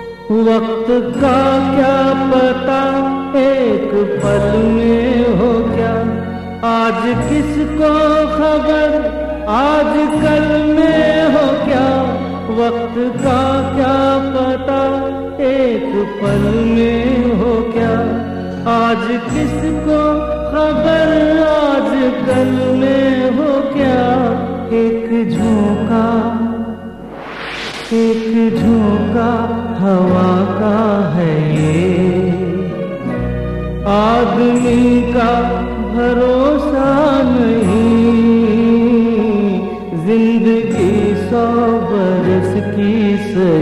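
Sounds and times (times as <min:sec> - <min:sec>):
man's voice: 0:00.3 - 0:33.0, 0:33.8 - 0:43.6.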